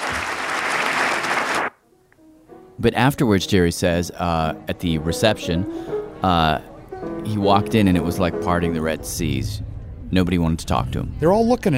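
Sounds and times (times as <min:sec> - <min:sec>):
audience clapping: 0:00.0 - 0:01.8
speech: 0:02.8 - 0:11.7.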